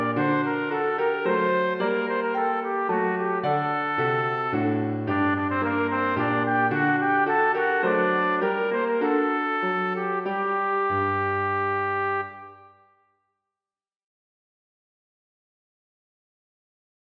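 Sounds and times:
piano: 0.0 - 13.0
trumpet playing a minuet: 0.0 - 13.0.

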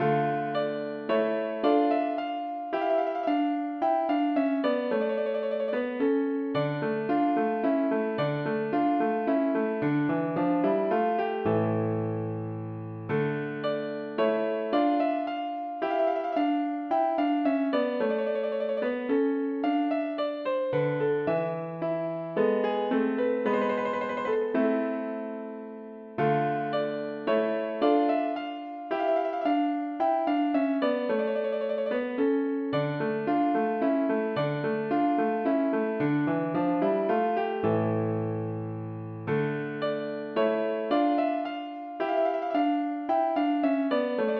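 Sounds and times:
piano minuet: 0.0 - 44.3.

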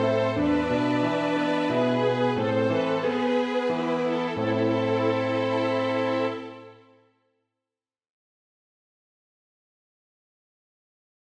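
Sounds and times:
aria for two violins horn and piano: 0.0 - 7.0.

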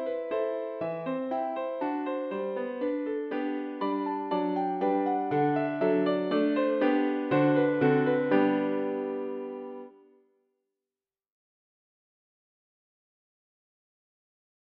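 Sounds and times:
piano minuet: 0.0 - 10.1.

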